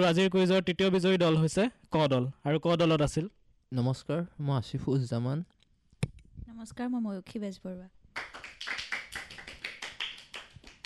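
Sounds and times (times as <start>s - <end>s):
speech: 0.0s - 5.6s, 6.4s - 8.8s
small group clapping for quiz teams after a contest: 8.1s - 10.8s.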